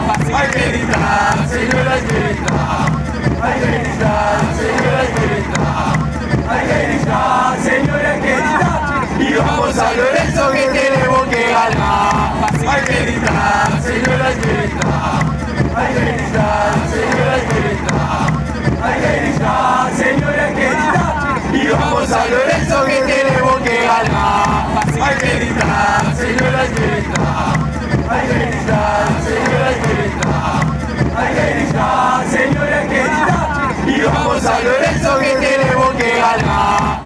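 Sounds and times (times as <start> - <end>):
people chanting: 0.0 - 37.0.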